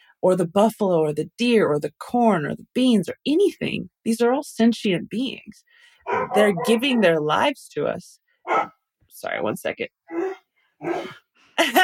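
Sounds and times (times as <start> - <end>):
speech: 0.2 - 11.8
dog barking: 6.0 - 7.1, 8.4 - 8.7, 10.1 - 11.2.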